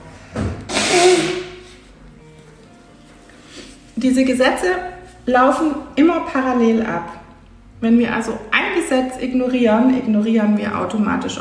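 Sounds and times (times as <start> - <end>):
person blowing nose: 0.4 - 1.9
speech: 4.0 - 7.2, 7.8 - 11.4.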